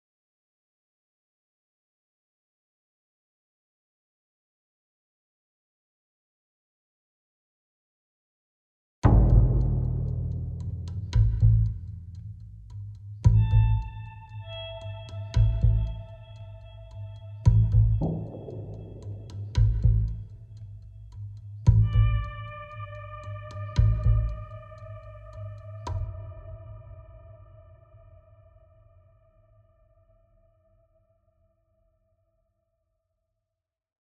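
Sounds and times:
low tension music: 9.0s - 29.8s.

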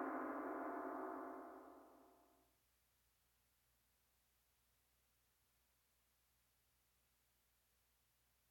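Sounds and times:
tension music loop: 0.0s - 1.6s.

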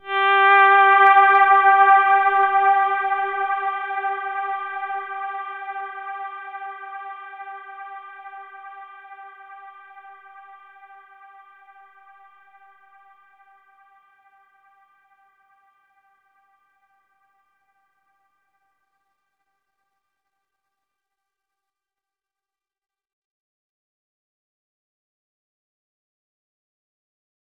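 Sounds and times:
overlay tone: 0.0s - 10.1s.

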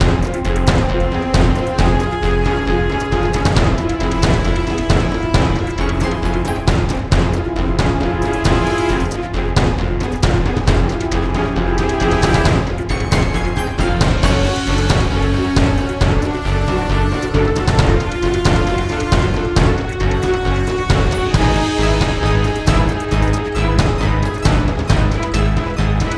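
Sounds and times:
game boss music: 0.0s - 26.1s.

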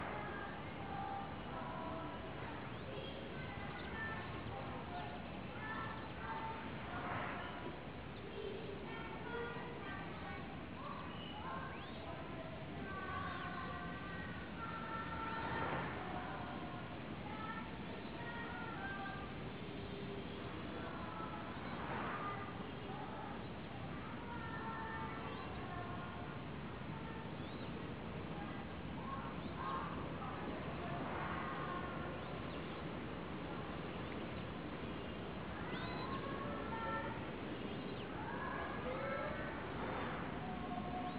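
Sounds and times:
school ambience: 0.0s - 41.1s.

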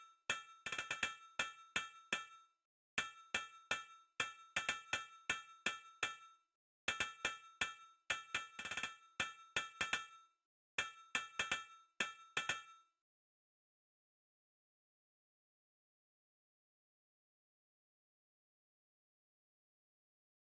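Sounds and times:
percussion: 0.0s - 13.0s.

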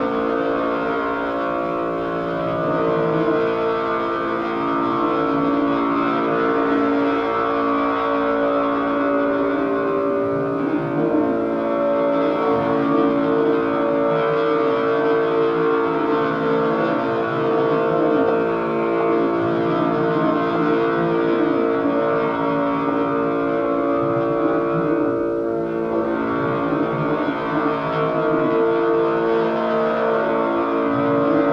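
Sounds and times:
ambient drone: 0.0s - 31.5s.

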